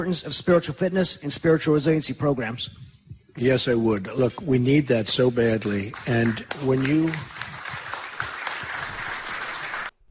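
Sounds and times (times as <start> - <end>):
speech: 0.0 - 7.5
audience clapping and applause: 5.2 - 10.0.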